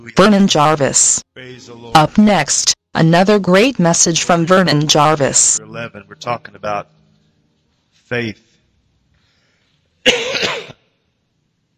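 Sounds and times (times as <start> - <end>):
speech: 0.0 - 7.0, 8.1 - 8.5, 10.0 - 10.8
person coughing: 10.0 - 10.9.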